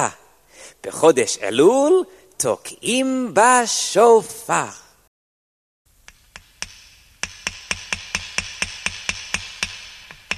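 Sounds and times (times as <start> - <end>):
speech: 0.0 - 0.2, 0.8 - 4.8
hammer driving nails into wood: 6.1 - 10.3.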